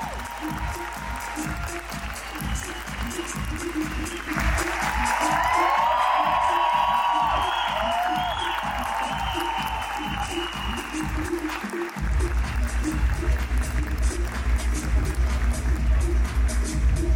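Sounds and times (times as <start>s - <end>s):
cheers and whoops: 0.0s - 3.5s, 4.3s - 11.8s
audience applause: 0.0s - 17.0s.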